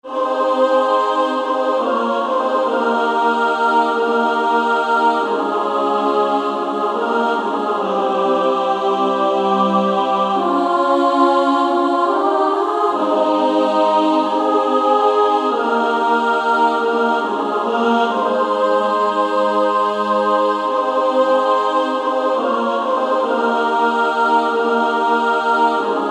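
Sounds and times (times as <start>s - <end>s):
female choir singing: 0.0s - 26.1s.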